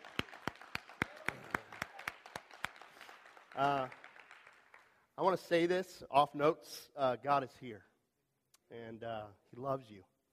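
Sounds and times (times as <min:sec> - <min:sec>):
audience clapping in unison: 0:00.0 - 0:05.4
speech: 0:03.6 - 0:04.0, 0:05.2 - 0:07.9, 0:08.7 - 0:10.1.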